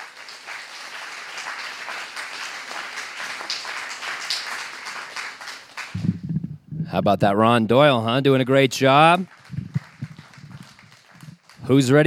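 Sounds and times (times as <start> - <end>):
audience applause: 0.0 - 6.1, 8.9 - 12.0
speech: 7.0 - 9.4, 11.7 - 12.0.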